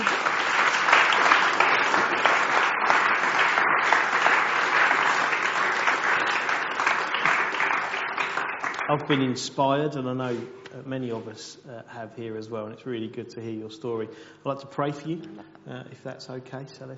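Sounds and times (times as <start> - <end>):
audience round of applause: 0.0 - 9.2
speech: 8.9 - 16.9.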